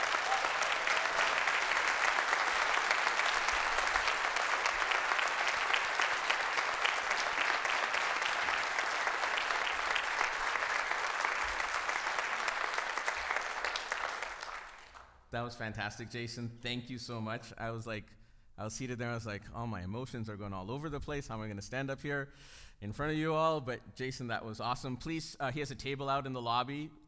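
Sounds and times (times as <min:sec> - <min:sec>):
audience applause: 0:00.0 - 0:15.1
speech: 0:15.4 - 0:27.0.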